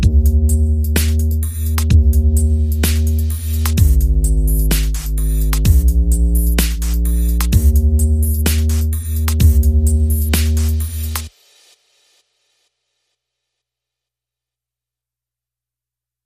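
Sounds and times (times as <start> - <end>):
bass: 0.0 - 11.3
drums: 0.0 - 12.7.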